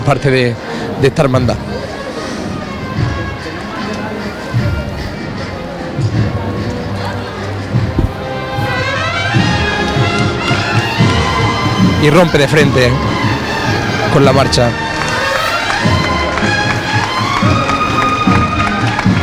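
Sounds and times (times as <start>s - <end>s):
crowd murmuring: 0.0s - 19.2s
shuffling footsteps of float bearers in a Holy Week procession in Jaén: 0.0s - 19.2s
speech: 0.1s - 1.8s, 12.0s - 13.1s, 14.1s - 14.9s.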